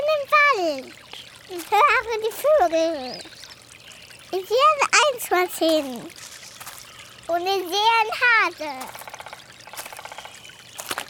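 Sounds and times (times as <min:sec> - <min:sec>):
steady watery trickle: 0:00.0 - 0:11.0
speech: 0:00.6 - 0:03.4, 0:04.3 - 0:06.2, 0:07.3 - 0:09.0
foot stepping into a water puddle: 0:01.1 - 0:04.2, 0:05.4 - 0:07.4, 0:08.2 - 0:11.0.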